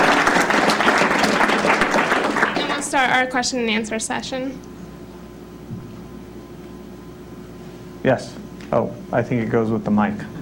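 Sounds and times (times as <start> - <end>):
round of applause: 0.0 - 3.0
speech: 3.0 - 4.8, 8.0 - 10.3.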